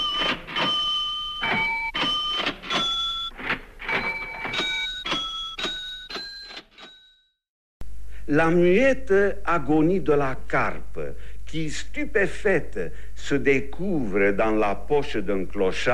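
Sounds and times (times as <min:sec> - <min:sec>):
cash register played as music: 0:00.0 - 0:07.3
speech: 0:08.3 - 0:15.9.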